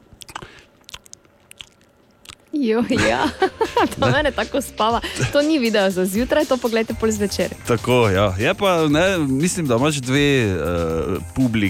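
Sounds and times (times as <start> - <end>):
crunchy food being chewed: 0.0 - 2.6
speech: 2.5 - 11.6
laughter: 2.8 - 5.6.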